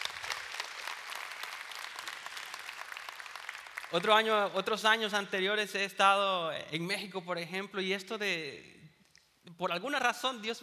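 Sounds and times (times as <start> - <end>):
audience applause: 0.0 - 4.3
speech: 3.9 - 8.8, 9.6 - 10.6.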